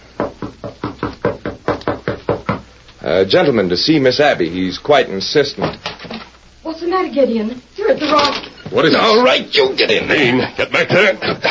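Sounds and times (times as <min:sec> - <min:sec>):
knocking on a door: 0:00.2 - 0:02.7
speech: 0:03.1 - 0:05.9, 0:07.0 - 0:11.4
laughter: 0:09.8 - 0:11.4.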